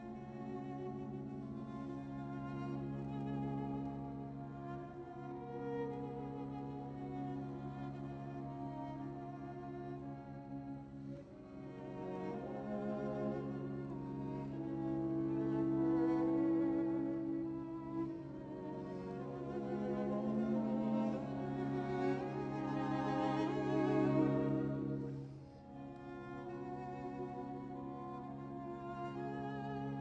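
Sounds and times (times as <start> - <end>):
classical music: 0.0 - 29.9.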